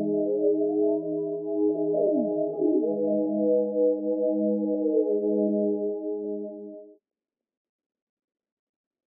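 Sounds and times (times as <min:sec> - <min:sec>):
160 BPM G sharp minor synth pad melody loop: 0:00.0 - 0:06.8.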